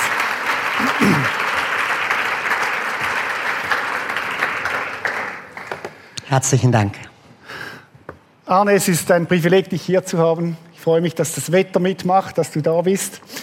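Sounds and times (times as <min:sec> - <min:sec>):
audience applause: 0:00.0 - 0:06.0
speech: 0:06.3 - 0:07.0, 0:08.5 - 0:13.4.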